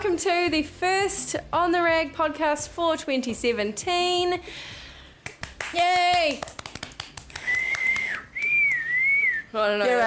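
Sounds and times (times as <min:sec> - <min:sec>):
speech: 0:00.1 - 0:04.8, 0:05.7 - 0:06.5, 0:09.5 - 0:10.0
sharp claps or taps: 0:05.2 - 0:08.9
shrill high whistle: 0:07.4 - 0:09.5.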